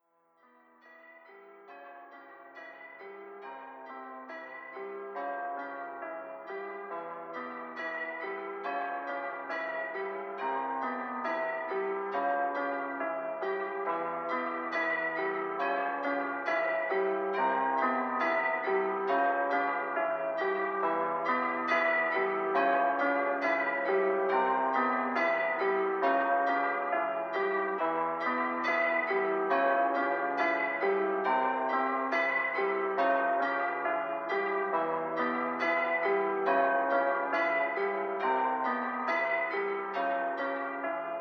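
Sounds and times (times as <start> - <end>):
music: 0.0 - 41.1.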